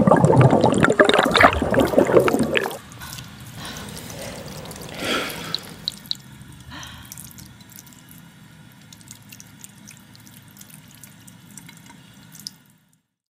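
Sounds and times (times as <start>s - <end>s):
person inhaling and exhaling: 0.4s - 7.2s.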